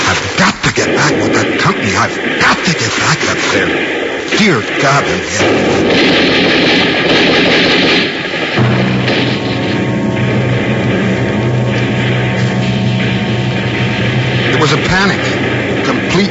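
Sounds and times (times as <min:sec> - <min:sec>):
rifle and submachine gun fire in battle against Chinese troops: 0:00.8 - 0:16.2
speech: 0:04.4 - 0:06.9
steady low droning tone: 0:08.6 - 0:16.2.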